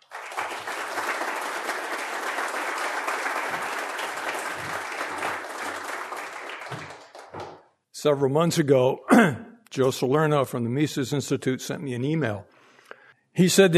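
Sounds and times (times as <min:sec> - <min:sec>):
audience applause welcoming a speaker to the lectern: 0:00.0 - 0:07.7
speech: 0:08.0 - 0:12.5, 0:13.4 - 0:13.7.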